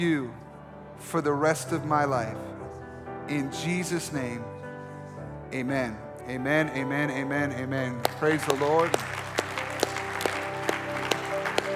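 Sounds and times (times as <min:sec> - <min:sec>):
speech: 0:00.0 - 0:02.5, 0:03.3 - 0:04.6, 0:05.5 - 0:09.2
sustained organ-like music: 0:00.0 - 0:11.7
audience clapping in unison: 0:08.0 - 0:11.7.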